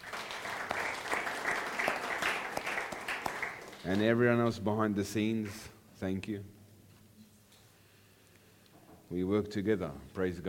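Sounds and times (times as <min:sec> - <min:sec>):
audience applause: 0:00.0 - 0:04.3
speech: 0:03.8 - 0:06.6, 0:09.1 - 0:10.4.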